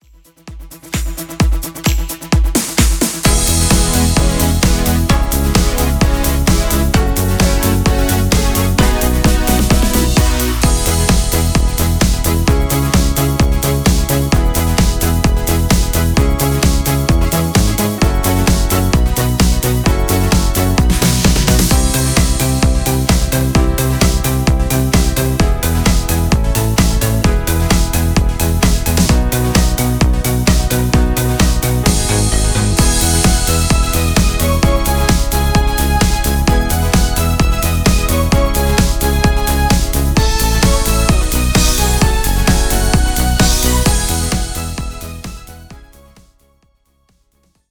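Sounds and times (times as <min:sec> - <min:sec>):
disco music: 0:00.0 - 0:46.3.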